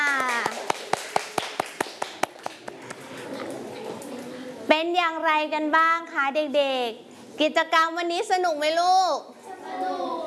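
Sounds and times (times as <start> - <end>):
children applauding: 0.0 - 2.3
speech: 4.9 - 10.2.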